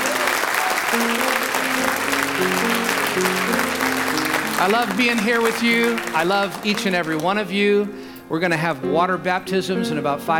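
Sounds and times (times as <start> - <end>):
audience clapping hands: 0.0 - 7.7
speech: 0.9 - 1.3, 2.4 - 3.7, 4.6 - 10.3.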